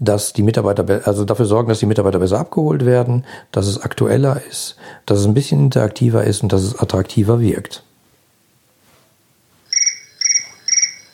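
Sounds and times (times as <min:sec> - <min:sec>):
speech: 0:00.0 - 0:07.9
electronic telephone ringing: 0:09.6 - 0:11.1.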